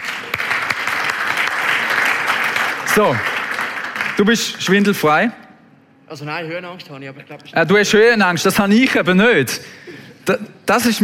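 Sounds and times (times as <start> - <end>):
audience applause: 0.0 - 4.6
speech: 3.0 - 3.3, 4.2 - 5.4, 6.1 - 11.0.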